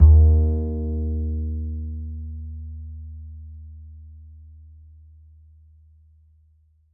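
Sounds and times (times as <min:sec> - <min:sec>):
upright acoustic bass A string note: 0:00.0 - 0:03.2.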